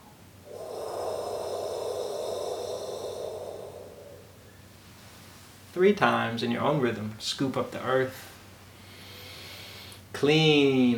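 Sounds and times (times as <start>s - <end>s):
grounding exhale with a HOH sound: 0.4s - 4.8s
speech: 5.8s - 8.3s, 10.2s - 10.9s.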